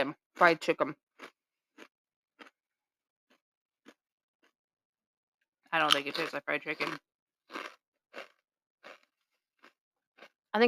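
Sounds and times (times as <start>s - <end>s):
speech: 0.0s - 1.0s, 5.7s - 8.3s
crunching a potato chip while eating: 6.8s - 10.4s.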